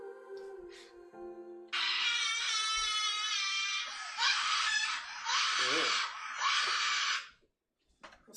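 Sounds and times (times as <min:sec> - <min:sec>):
child screaming: 0:01.7 - 0:07.3.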